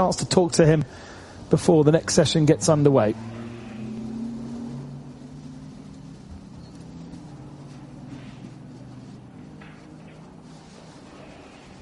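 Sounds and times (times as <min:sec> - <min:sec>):
speech: 0:00.0 - 0:03.4
racing car engine driving into the pits: 0:01.5 - 0:11.2.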